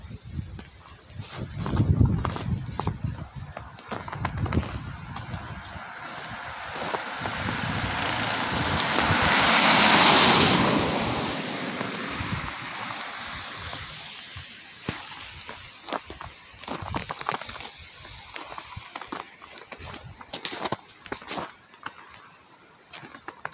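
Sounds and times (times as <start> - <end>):
footsteps walking along route 191: 0.5 - 9.5, 11.6 - 22.3
vehicle passing on route 191: 4.6 - 14.8.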